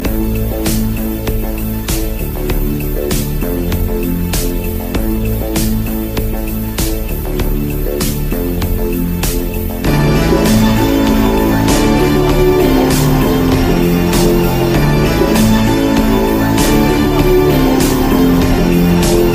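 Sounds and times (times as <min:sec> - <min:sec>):
stomping beat: 0:00.0 - 0:19.3.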